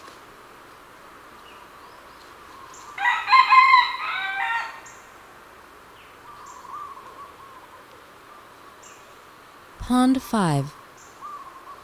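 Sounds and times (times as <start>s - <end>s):
red junglefowl crowing: 3.0s - 4.9s
speech: 9.9s - 10.8s.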